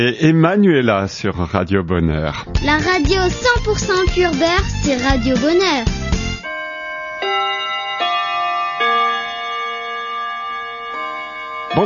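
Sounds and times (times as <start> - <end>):
speech: 0.0 - 6.0
clock chime marking the hour: 6.4 - 11.8.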